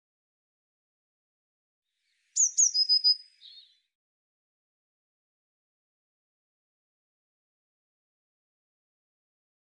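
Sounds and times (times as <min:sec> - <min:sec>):
Eurasian blue tit calls: 0:02.4 - 0:03.7.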